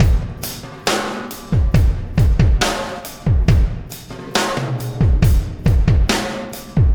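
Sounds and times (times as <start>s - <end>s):
processed drum kit beat: 0.0s - 6.9s.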